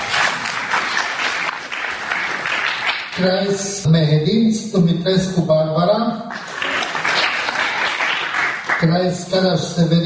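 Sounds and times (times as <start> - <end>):
applause from assembly audience: 0.0 - 3.6, 6.3 - 9.1
speech: 3.2 - 6.3, 8.8 - 10.0.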